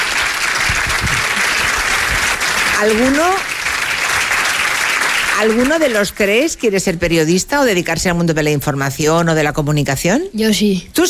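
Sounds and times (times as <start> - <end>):
applause: 0.0 - 6.5
speech: 2.8 - 3.5, 5.4 - 11.0.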